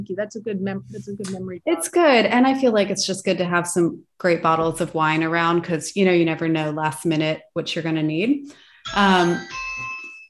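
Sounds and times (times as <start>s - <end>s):
speech: 0.0s - 9.9s
bell ringing: 8.8s - 10.2s.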